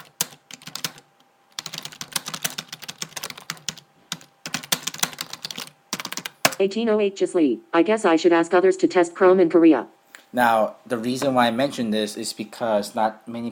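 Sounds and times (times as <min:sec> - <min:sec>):
typing text on a computer keyboard: 0:00.0 - 0:01.0, 0:01.6 - 0:06.6
speech: 0:06.6 - 0:13.5.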